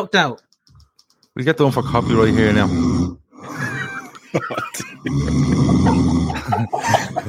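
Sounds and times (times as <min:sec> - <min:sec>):
speech: 0:00.0 - 0:00.4, 0:01.4 - 0:03.6, 0:04.3 - 0:07.2
man snoring: 0:01.8 - 0:04.0, 0:05.0 - 0:07.2
laughter: 0:03.4 - 0:07.2.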